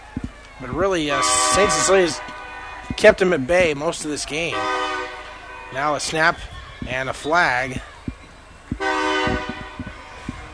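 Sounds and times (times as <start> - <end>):
low thumps: 0.0 - 4.2, 7.7 - 10.5
speech: 0.6 - 2.3, 3.0 - 4.8, 5.7 - 7.9
passing train horn during a high school football game: 0.7 - 3.8, 4.4 - 6.3, 8.8 - 10.0.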